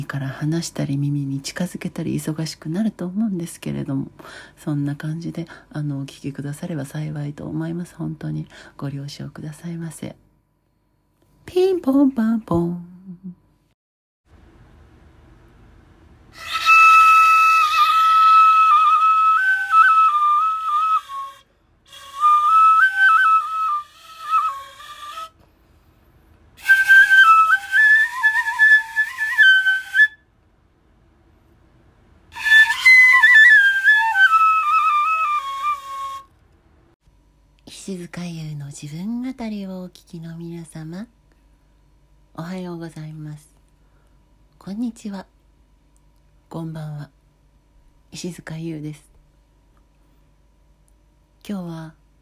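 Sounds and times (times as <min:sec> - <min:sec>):
speech: 0:00.0 - 0:10.2, 0:11.4 - 0:13.4, 0:38.1 - 0:41.2, 0:42.4 - 0:43.5, 0:44.6 - 0:45.3, 0:46.5 - 0:47.2, 0:48.1 - 0:49.1, 0:51.5 - 0:52.0
shinobue bamboo flute playing a melody: 0:16.3 - 0:25.4, 0:26.6 - 0:30.3, 0:32.3 - 0:36.3.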